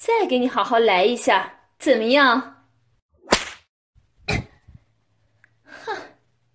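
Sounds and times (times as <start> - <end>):
speech: 0.1 - 2.6
whip lashes: 3.2 - 3.7.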